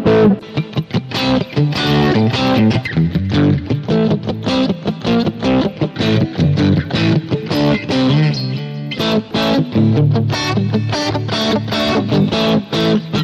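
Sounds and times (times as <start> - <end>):
guitar booster pedal: 0.0 - 13.2.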